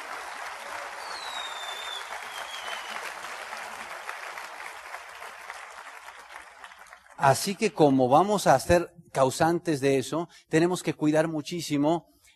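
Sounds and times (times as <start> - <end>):
audience applause: 0.0 - 7.6
speech: 7.2 - 12.1.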